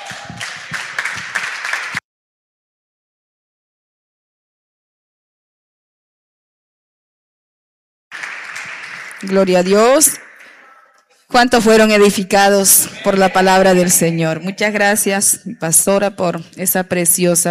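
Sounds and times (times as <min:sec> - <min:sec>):
audience applause: 0:00.0 - 0:02.0, 0:08.1 - 0:11.0
speech: 0:09.2 - 0:10.2, 0:11.3 - 0:17.5.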